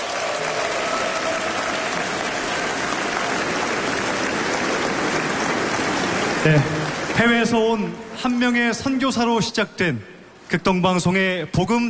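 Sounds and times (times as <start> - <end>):
applause: 0.0 - 7.9
speech: 6.4 - 11.8.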